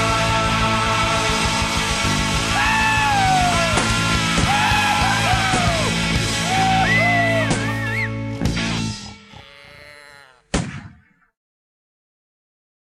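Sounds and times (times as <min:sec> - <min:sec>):
aggro punk music: 0:00.0 - 0:09.3.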